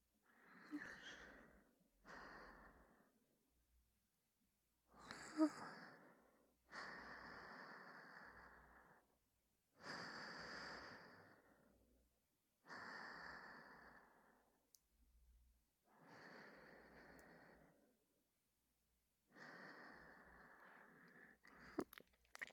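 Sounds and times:
breathing: 0.3 - 3.2, 5.0 - 9.2, 9.8 - 11.8, 12.6 - 14.6, 15.9 - 18.0, 19.3 - 21.9.

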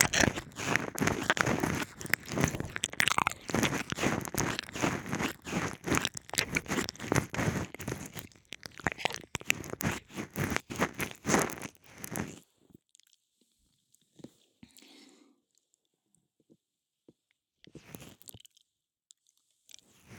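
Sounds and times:
soothing ear licking: 0.0 - 12.4.

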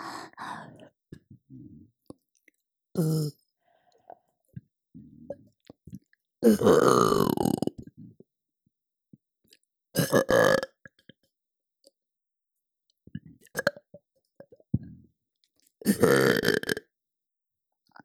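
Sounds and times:
person burping for ASMR: 3.0 - 3.4, 6.5 - 7.7, 10.0 - 10.8, 15.9 - 16.8.

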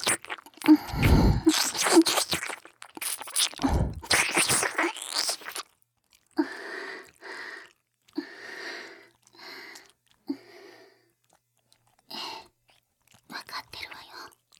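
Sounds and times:
ear licking: 0.0 - 5.7.

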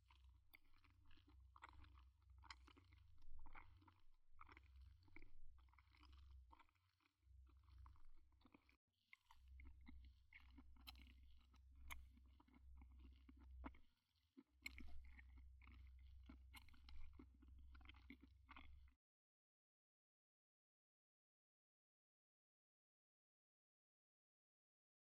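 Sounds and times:
eating dango dumplings: 0.0 - 19.0.

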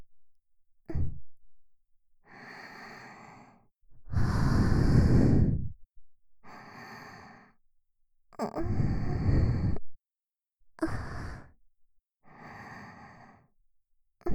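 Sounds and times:
sweet breathing loop: 2.3 - 5.8, 6.4 - 7.6, 8.7 - 9.8, 10.8 - 11.6, 12.3 - 13.6.

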